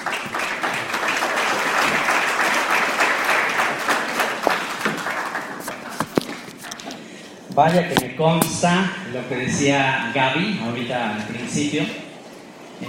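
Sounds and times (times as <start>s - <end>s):
audience applause: 0.0s - 6.5s
speech: 7.6s - 12.0s.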